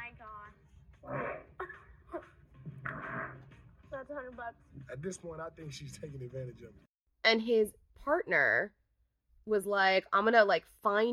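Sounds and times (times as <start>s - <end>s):
fart: 1.0s - 1.6s, 2.6s - 3.5s
speech: 4.3s - 8.8s, 9.5s - 11.1s.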